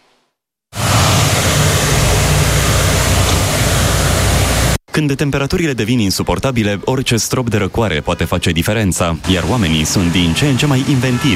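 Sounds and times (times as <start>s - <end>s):
snow cannon producing a water curtain: 0.8s - 4.8s, 9.2s - 11.3s
speech: 5.0s - 11.3s.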